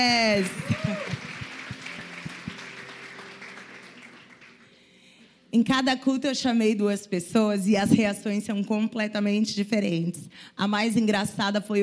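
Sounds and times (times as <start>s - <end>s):
speech: 0.0s - 1.1s, 5.6s - 11.8s
audience applause: 0.4s - 4.7s.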